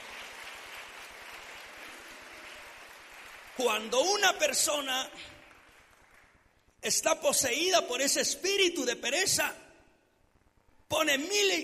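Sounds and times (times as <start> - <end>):
audience applause: 0.0 - 6.4
speech: 3.6 - 5.4, 6.8 - 9.6, 10.9 - 11.6.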